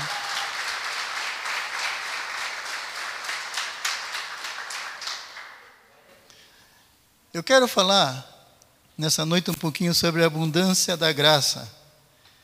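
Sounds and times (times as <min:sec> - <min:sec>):
crowd applauding: 0:00.0 - 0:05.7
speech: 0:07.4 - 0:08.3, 0:09.0 - 0:11.8.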